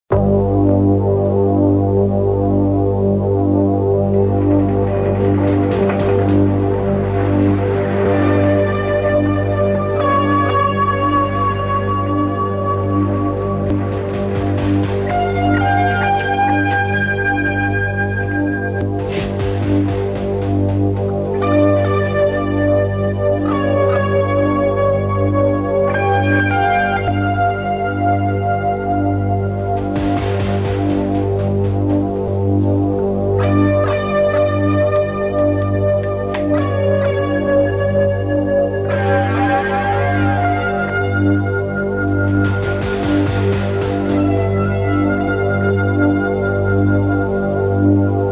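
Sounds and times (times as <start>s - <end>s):
suspense theme music: 0.1s - 48.3s.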